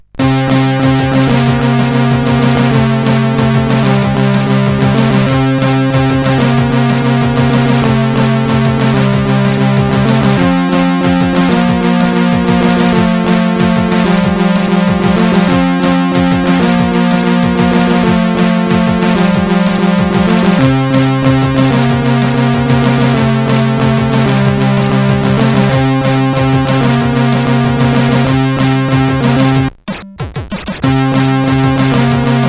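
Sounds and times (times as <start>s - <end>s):
SID intro music on CSG8580R5 chip: 0.2s - 32.4s.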